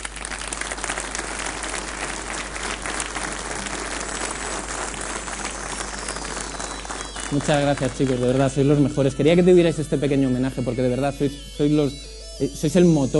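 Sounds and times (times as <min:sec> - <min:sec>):
crowd applauding: 0:00.0 - 0:09.8
speech: 0:07.3 - 0:13.1.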